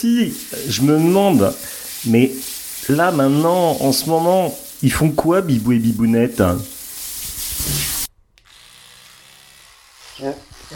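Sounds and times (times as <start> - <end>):
speech: 0.0 - 6.8, 10.2 - 10.7
toothbrush scrubbing teeth: 0.2 - 8.1.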